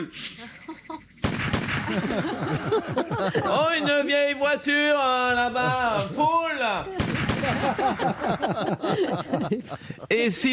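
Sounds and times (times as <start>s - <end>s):
speech: 0.0s - 0.5s, 1.9s - 10.5s
people chattering and laughing: 0.4s - 10.2s
gunshots fired at a car: 1.2s - 2.4s, 7.0s - 8.4s.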